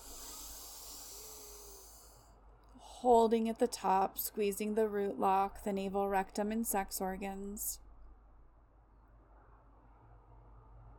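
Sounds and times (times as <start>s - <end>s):
deep inhale through both nostrils during alternate nostril breathing practice: 0.0s - 2.3s
speech: 3.0s - 7.8s.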